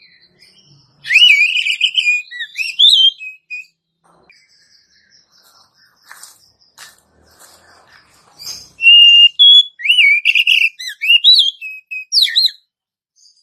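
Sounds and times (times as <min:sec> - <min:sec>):
Oriental magpie-robin whistled phrase: 0:01.0 - 0:03.7, 0:08.8 - 0:12.6.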